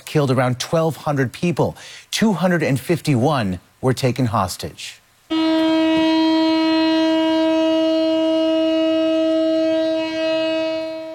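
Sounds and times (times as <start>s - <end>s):
speech: 0.1s - 5.0s
memorial siren sounding: 5.3s - 11.1s.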